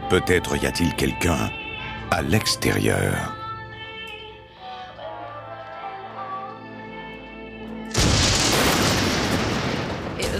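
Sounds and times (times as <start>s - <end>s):
speech: 0.1s - 3.4s
booms like lightning around the house: 7.9s - 10.3s.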